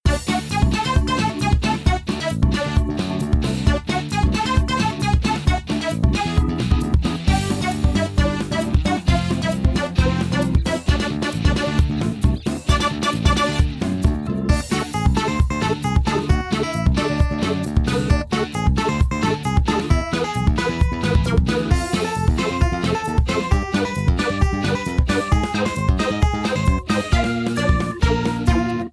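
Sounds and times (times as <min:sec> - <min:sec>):
music: 0:00.0 - 0:28.9.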